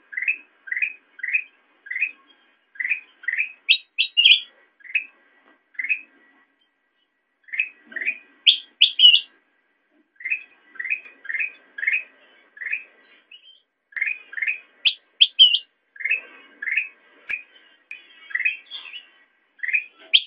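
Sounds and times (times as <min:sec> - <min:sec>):
sooty-headed bulbul chirping: 0:00.0 - 0:05.1, 0:07.5 - 0:09.3, 0:10.2 - 0:17.5, 0:18.2 - 0:20.2.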